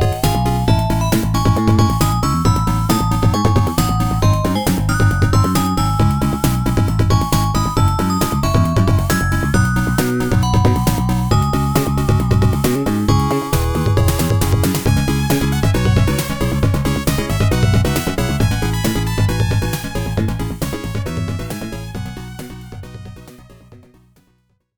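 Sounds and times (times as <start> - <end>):
FM synth music: 0.0 - 23.4.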